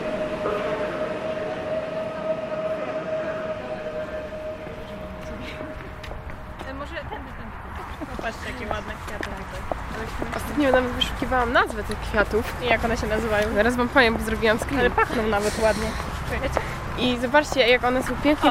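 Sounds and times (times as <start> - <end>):
train brakes long high-pitched squeal: 0.0 - 8.0
indistinct voices: 0.0 - 18.4
intercity train rumbling into station: 0.0 - 18.4
speech: 8.3 - 18.4.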